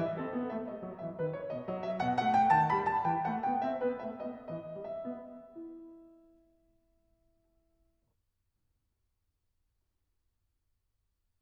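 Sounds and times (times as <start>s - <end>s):
baroque keyboard partita movement in E minor: 0.0s - 6.4s.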